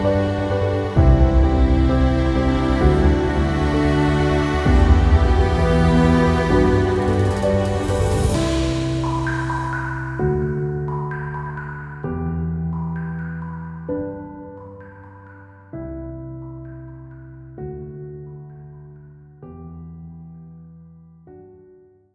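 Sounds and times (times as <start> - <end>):
epic music: 0.0 - 15.0.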